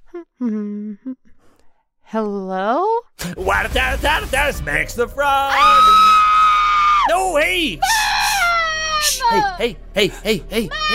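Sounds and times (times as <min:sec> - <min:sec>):
speech: 0:00.1 - 0:01.3, 0:02.1 - 0:06.1, 0:07.1 - 0:08.1, 0:09.3 - 0:10.9
child screaming: 0:05.5 - 0:07.1, 0:07.8 - 0:09.6, 0:10.7 - 0:10.9.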